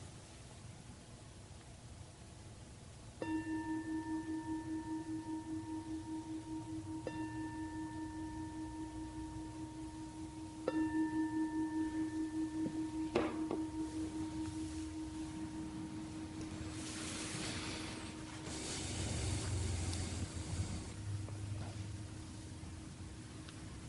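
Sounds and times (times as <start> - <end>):
meditation bell ringing: 3.2 - 23.8.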